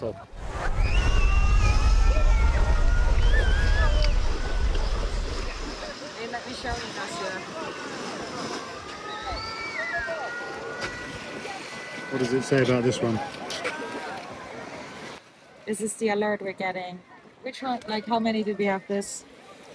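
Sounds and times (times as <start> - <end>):
speech: 0.0 - 1.0, 12.1 - 13.4, 15.7 - 19.3
waves washing ashore on a city beach: 0.0 - 15.8.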